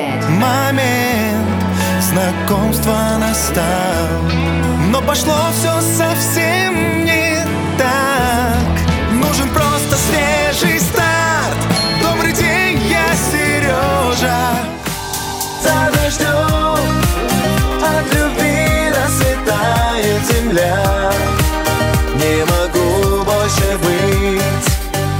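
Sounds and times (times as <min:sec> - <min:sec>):
Russian vocal singing: 0:00.1 - 0:25.1.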